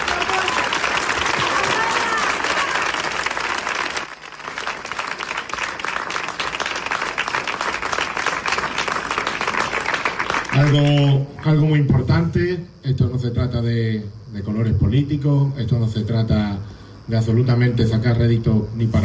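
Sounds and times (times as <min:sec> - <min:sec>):
audience applause: 0:00.0 - 0:11.4
speech: 0:10.7 - 0:19.0.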